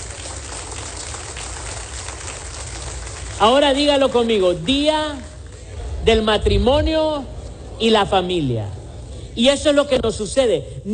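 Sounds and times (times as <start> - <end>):
audience applause: 0.0 - 5.8
speech: 3.4 - 5.3, 6.0 - 8.8, 9.4 - 10.9.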